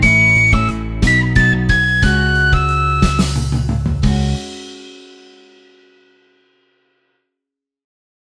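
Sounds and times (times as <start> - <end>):
instrumental backing track: 0.0 - 6.0.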